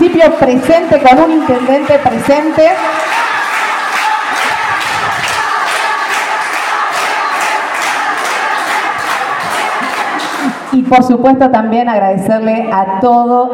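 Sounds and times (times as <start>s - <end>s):
audience applauding: 0.0s - 10.8s
speech: 0.1s - 3.3s, 10.8s - 13.5s.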